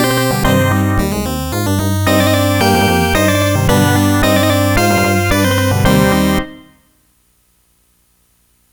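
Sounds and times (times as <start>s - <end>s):
musical riffs: 0.0s - 6.8s.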